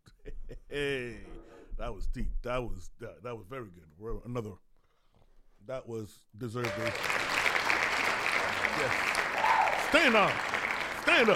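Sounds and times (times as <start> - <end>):
speech: 0.7 - 4.7, 5.6 - 7.4, 8.5 - 9.2, 9.9 - 11.3
people whooping: 6.6 - 7.4, 8.9 - 11.3
audience applause and clapping: 6.6 - 11.3.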